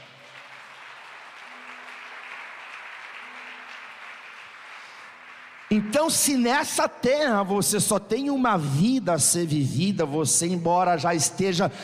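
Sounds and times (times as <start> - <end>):
audience applauding: 0.0 - 6.6
speech: 5.7 - 11.8.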